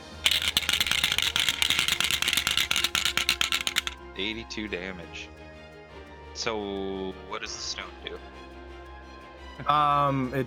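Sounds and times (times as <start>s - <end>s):
many dice rolling: 0.0s - 4.0s
speech: 4.2s - 5.4s, 6.4s - 8.3s, 9.6s - 10.4s.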